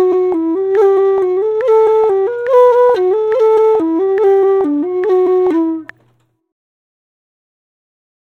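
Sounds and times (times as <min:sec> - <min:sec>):
Irish flute playing a reel with rolls: 0:00.0 - 0:06.3.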